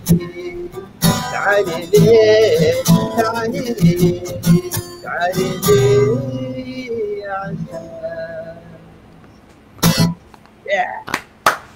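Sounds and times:
voice with clear harmonics: 0:00.0 - 0:11.1
speech: 0:01.4 - 0:06.4
hand claps: 0:11.0 - 0:11.7.

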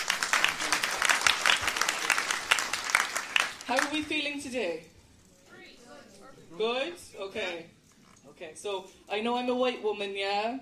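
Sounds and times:
audience applause: 0:00.0 - 0:04.1
speech: 0:03.7 - 0:05.0, 0:06.5 - 0:10.6.

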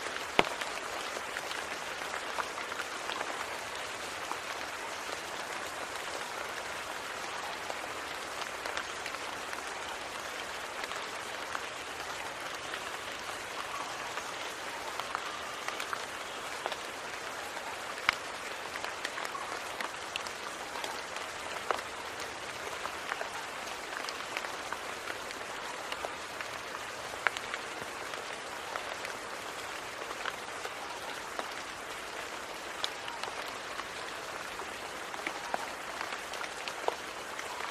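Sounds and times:
rain pattering: 0:00.0 - 0:37.6.

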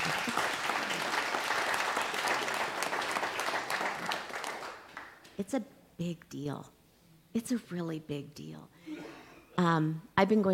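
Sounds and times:
audience clapping: 0:00.0 - 0:05.4
speech: 0:05.4 - 0:09.0, 0:09.6 - 0:10.5.

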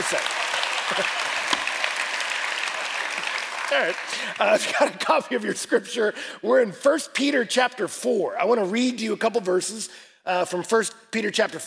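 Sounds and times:
speech: 0:00.0 - 0:01.2, 0:03.7 - 0:11.6
church audience applauding for their pastor: 0:00.0 - 0:04.8.

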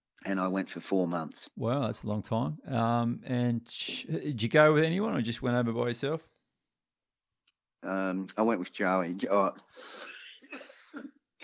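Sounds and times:
speech: 0:00.3 - 0:06.3, 0:07.8 - 0:11.4
coughing after water went down the wrong way: 0:09.8 - 0:11.4.

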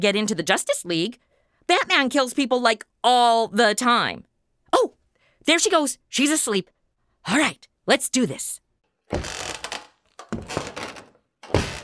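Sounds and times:
speech: 0:00.0 - 0:09.4
heavy clumsy footsteps walking across a room: 0:10.3 - 0:11.8.

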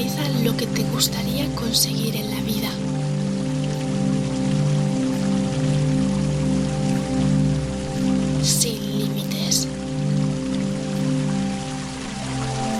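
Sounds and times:
speech: 0:00.0 - 0:03.0, 0:08.4 - 0:09.8
water splashing in a fountain: 0:00.0 - 0:12.7.

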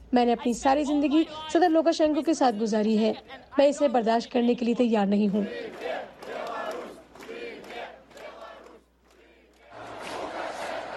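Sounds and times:
speech: 0:00.1 - 0:06.1
crowd of protesters in Belarus chanting: 0:05.3 - 0:10.9.

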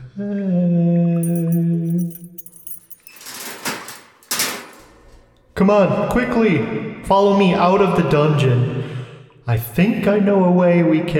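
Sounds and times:
speech: 0:00.2 - 0:00.7, 0:05.6 - 0:11.1
metallic keys jangling: 0:01.2 - 0:04.4
lock rattling as it is worked open: 0:01.2 - 0:04.8.

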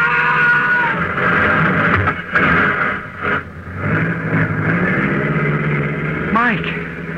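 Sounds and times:
voices shouting: 0:00.0 - 0:01.2
car engine driving: 0:00.0 - 0:07.1.

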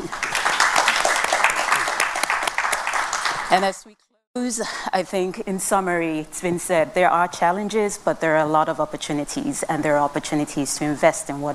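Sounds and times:
audience applause: 0:00.0 - 0:03.8
speech: 0:03.5 - 0:11.5.

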